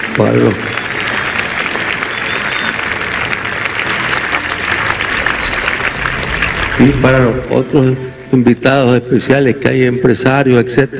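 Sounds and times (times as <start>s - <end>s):
audience applause: 0.0s - 8.4s
speech: 0.2s - 0.8s, 6.8s - 10.9s.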